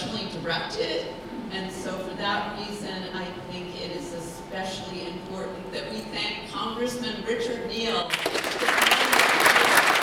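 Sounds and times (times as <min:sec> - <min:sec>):
speech: 0:00.5 - 0:03.7, 0:04.5 - 0:09.3
crowd clapping: 0:08.1 - 0:10.0.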